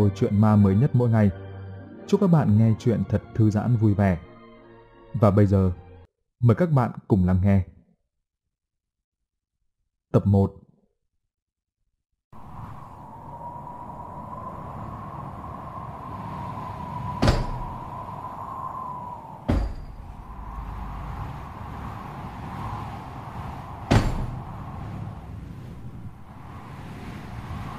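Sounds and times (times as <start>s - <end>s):
speech: 0.0s - 1.4s, 2.1s - 4.3s, 5.1s - 5.8s, 6.4s - 7.7s, 10.1s - 10.6s
steady roar of wind with faint whistling hum: 12.4s - 27.7s
wooden window shutters slamming in the wind: 17.2s - 17.8s, 19.4s - 20.2s.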